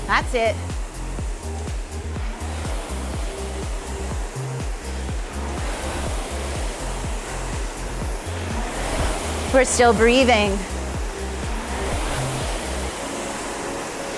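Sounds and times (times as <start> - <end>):
rowing machine flywheel whirring: 0.0 - 14.1
speech: 0.1 - 0.7, 9.5 - 10.7.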